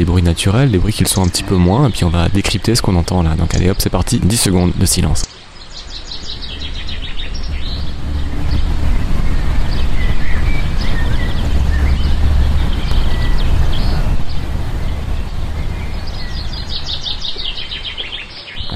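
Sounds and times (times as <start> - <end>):
trucks in the street: 0.0 - 18.6
speech: 0.1 - 5.4
car in the street: 5.4 - 18.6.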